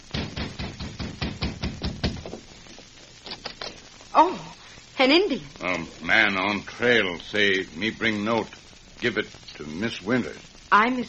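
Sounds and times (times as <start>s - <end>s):
knocking on a door: 0.1s - 2.4s
speech: 5.0s - 11.0s.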